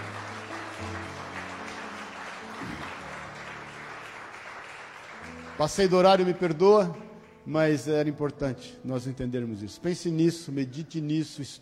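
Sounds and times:
audience applause: 0.0 - 6.6
speech: 5.6 - 11.6.

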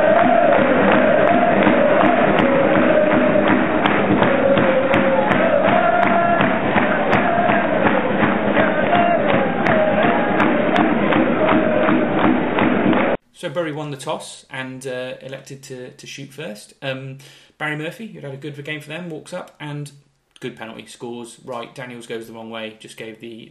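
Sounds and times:
Shrewsbury Town football fans chanting in unison before a penalty shootout: 0.0 - 13.2
dense crowd noise at a football match: 0.0 - 13.2
speech: 13.5 - 23.4.

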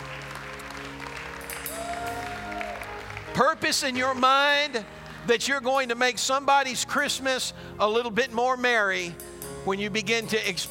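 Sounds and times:
audience hand clapping: 0.0 - 5.9
speech: 3.4 - 10.6.

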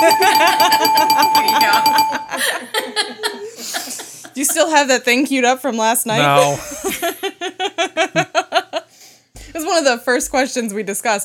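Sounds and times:
bell ringing: 0.0 - 2.6
people laughing: 0.0 - 4.8, 6.1 - 8.8
speech: 4.6 - 6.7, 9.8 - 11.2
people chattering: 6.1 - 6.6.

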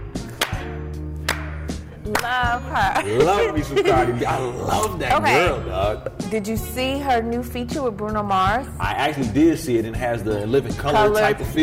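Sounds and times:
slow hand claps: 0.1 - 2.4
speech: 2.1 - 11.6
laughter: 2.8 - 5.4.

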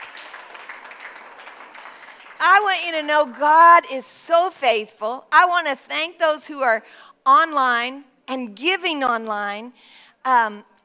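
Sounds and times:
audience clapping: 0.0 - 3.4
speech: 2.4 - 10.7.

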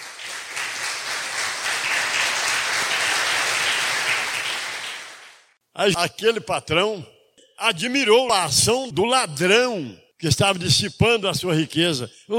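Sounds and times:
audience applause: 0.0 - 5.5
speech: 5.8 - 12.3.

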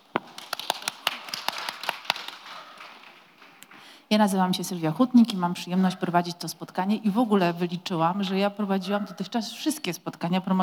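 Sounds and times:
audience applause: 0.1 - 3.6
speech: 4.1 - 10.6.

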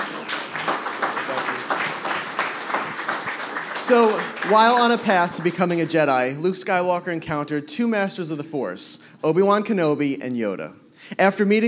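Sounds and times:
audience round of applause: 0.0 - 6.0
speech: 3.9 - 11.6.

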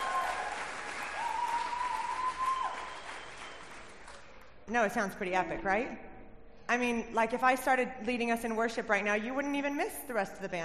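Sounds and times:
audience applause: 0.0 - 4.4
speech: 4.7 - 6.1, 6.7 - 10.6.

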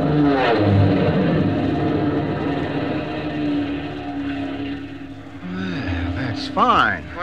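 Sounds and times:
AT-6 propeller airplane buzzing low overhead: 0.0 - 7.2
speech: 6.6 - 7.2.

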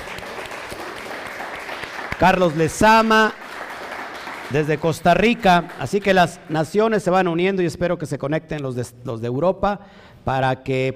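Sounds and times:
applause: 0.0 - 6.7
speech: 2.2 - 3.4, 4.5 - 10.9.

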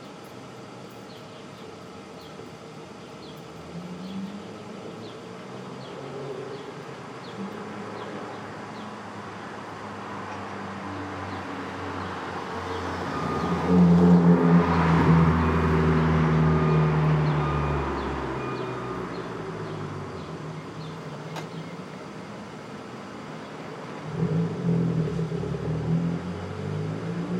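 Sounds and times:
vehicle engine hum passing on a Brooklyn street at dawn: 3.3 - 27.3.

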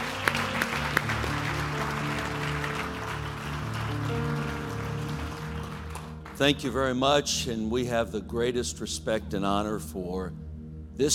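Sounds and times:
audience clapping: 0.0 - 6.8
speech: 6.4 - 10.4, 11.0 - 11.1.

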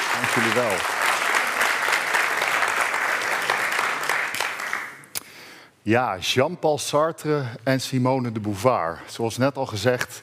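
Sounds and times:
crowd clapping: 0.0 - 5.1
speech: 0.2 - 1.0, 5.8 - 10.2.

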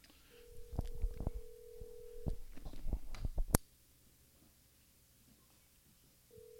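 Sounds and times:
telephone ringback tone while calling a listener: 0.3 - 2.6, 6.3 - 6.5.

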